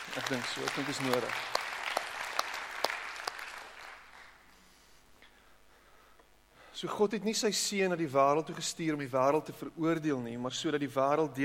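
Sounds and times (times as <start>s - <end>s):
audience clapping hands: 0.0s - 4.6s
speech: 0.2s - 1.6s, 6.8s - 11.4s.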